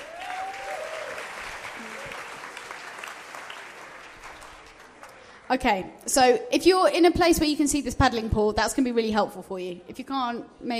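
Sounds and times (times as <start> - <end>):
round of applause: 0.0 - 5.5
speech: 5.5 - 10.7.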